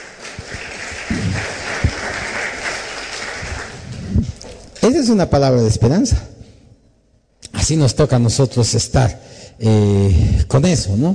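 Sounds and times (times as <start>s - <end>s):
loud audience applause: 0.0s - 4.4s
speech: 4.8s - 6.3s, 7.7s - 11.1s.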